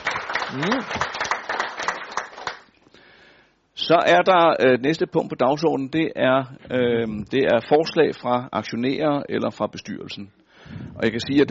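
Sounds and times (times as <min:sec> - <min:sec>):
audience clapping to re-elect auditor: 0:00.0 - 0:02.8
speech: 0:00.5 - 0:01.2, 0:03.9 - 0:11.4.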